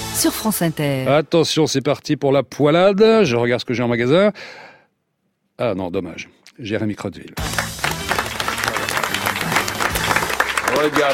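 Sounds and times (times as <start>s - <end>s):
speech: 0.2s - 4.7s, 5.6s - 7.6s, 10.8s - 11.1s
live comedy show audience applause: 7.4s - 11.1s.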